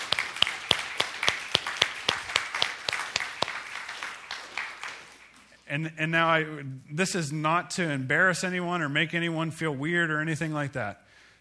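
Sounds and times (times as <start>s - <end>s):
audience applauding: 0.0s - 5.4s
speech: 5.7s - 11.0s.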